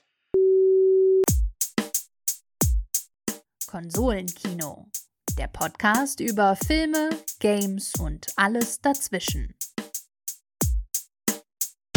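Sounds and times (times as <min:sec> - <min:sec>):
beep tone: 0:00.4 - 0:01.3
speech: 0:03.7 - 0:09.6.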